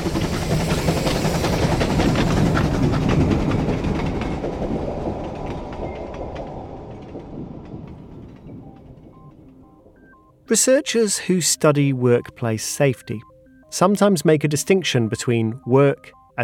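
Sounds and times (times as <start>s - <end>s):
rhythmic clatter of train wheels: 0.0s - 10.2s
train roaring past on the tracks: 0.0s - 10.5s
speech: 10.5s - 16.4s.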